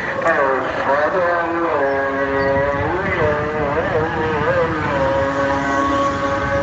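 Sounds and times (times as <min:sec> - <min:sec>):
person talking: 0:00.0 - 0:05.6
engine drone and traffic with tuk-tuks on a busy bumpy village street: 0:00.0 - 0:06.6.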